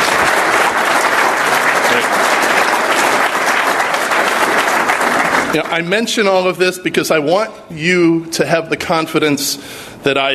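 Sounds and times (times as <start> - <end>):
applause: 0.0 - 6.3
speech: 5.5 - 10.3.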